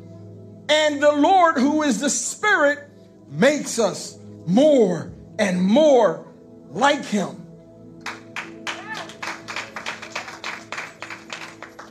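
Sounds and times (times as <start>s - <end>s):
speech: 0.7s - 7.4s
audience section clapping: 8.0s - 11.8s.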